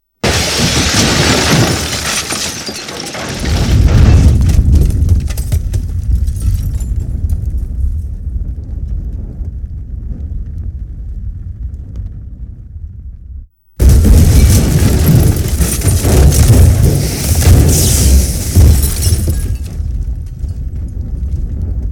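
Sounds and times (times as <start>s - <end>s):
explosion: 0.2s - 8.8s, 13.8s - 21.8s.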